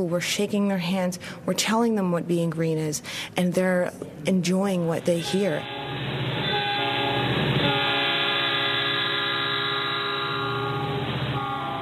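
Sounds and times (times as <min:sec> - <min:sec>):
speech: 0:00.0 - 0:06.0
passenger train horn blaring: 0:05.0 - 0:11.8.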